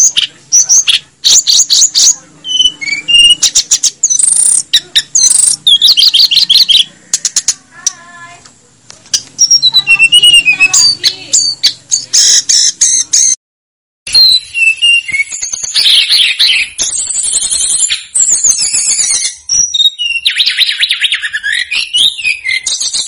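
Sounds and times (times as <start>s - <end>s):
flycatcher singing chattering trills and buzzy high notes: 0.0s - 8.4s, 9.1s - 13.4s, 14.1s - 23.0s.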